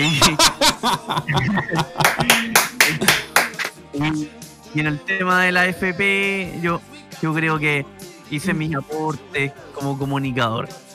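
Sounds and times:
speech: 0.0 - 3.2, 4.0 - 10.8
laughter: 0.0 - 3.7
small applause: 2.0 - 3.7.

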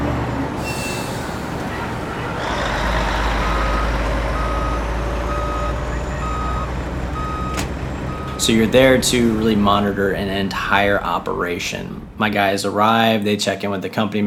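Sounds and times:
heavy diesel truck engines rumbling on a work site: 0.0 - 13.6
reversing alarm beeping: 0.6 - 2.4, 3.0 - 12.2
speech: 8.4 - 14.2.

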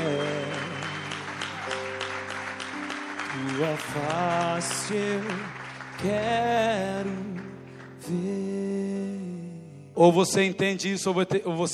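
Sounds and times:
audience applause: 0.0 - 8.0
speech: 3.6 - 7.4, 8.1 - 8.6, 10.0 - 11.7.

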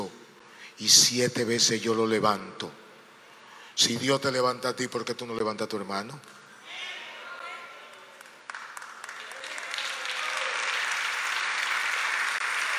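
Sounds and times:
speech: 0.8 - 2.8, 3.8 - 6.4
audience clapping: 7.8 - 12.7.

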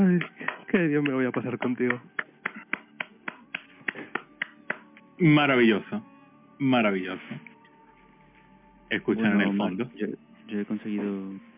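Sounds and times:
speech: 0.0 - 2.3, 5.2 - 7.5, 8.9 - 11.5
rhythmic clapping: 0.0 - 5.2.

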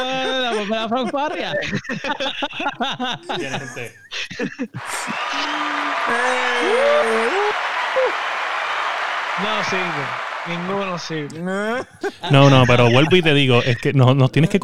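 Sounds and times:
speech: 0.0 - 5.5, 6.1 - 8.3, 9.4 - 14.6
laughter: 0.0 - 14.6
applause sound effect: 4.8 - 11.3, 12.3 - 13.7.

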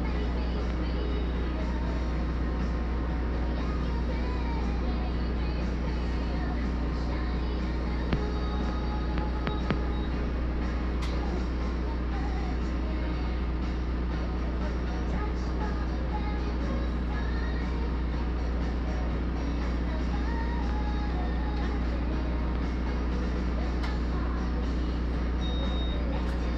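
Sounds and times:
low engine-like hum inside a mobile blood donation bus: 0.0 - 26.5
brief beeps: 9.5 - 10.2, 25.4 - 26.1.

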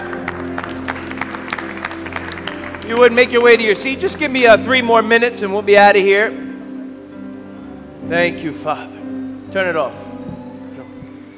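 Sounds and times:
audience applause: 0.0 - 4.0
speech: 2.9 - 6.4, 8.1 - 10.0.

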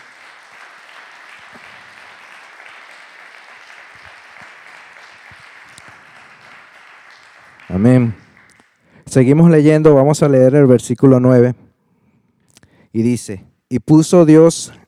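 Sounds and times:
audience applauding: 0.0 - 8.8
speech: 7.7 - 8.2, 9.2 - 11.6, 13.0 - 14.8.

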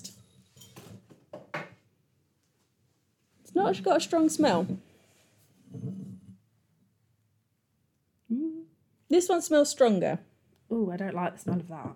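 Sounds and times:
glassware shuffled across a table: 0.0 - 1.7, 5.7 - 6.3
speech: 3.6 - 4.9, 9.2 - 11.9.

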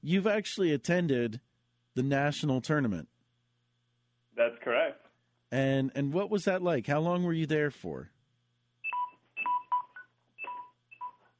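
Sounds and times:
speech: 0.0 - 3.1, 4.4 - 8.1
faint steady hum: 0.0 - 11.3
microwave oven beeping: 8.8 - 11.3.

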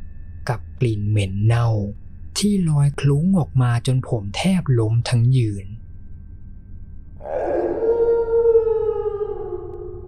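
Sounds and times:
speech: 0.5 - 5.8
eerie wailing cry: 7.2 - 10.0.

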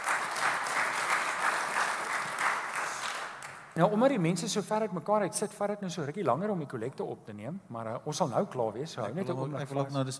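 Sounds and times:
audience clapping: 0.0 - 3.8
speech: 3.8 - 10.1.

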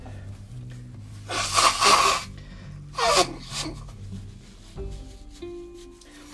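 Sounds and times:
person blowing nose after swimming in a pool: 1.3 - 4.0.

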